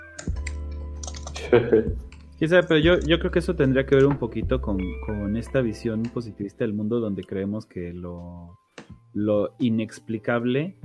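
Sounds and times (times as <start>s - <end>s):
typing on a computer keyboard: 0.1s - 1.4s
laughter: 1.4s - 2.0s
speech: 1.4s - 8.6s, 9.2s - 10.8s.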